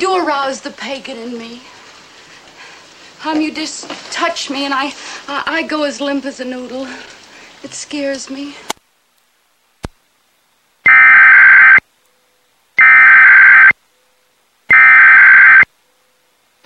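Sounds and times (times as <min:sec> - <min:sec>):
speech: 0:00.0 - 0:01.8, 0:03.2 - 0:08.8
Illinois Emergency Alert System test tone: 0:10.9 - 0:11.8, 0:12.8 - 0:13.7, 0:14.7 - 0:15.6.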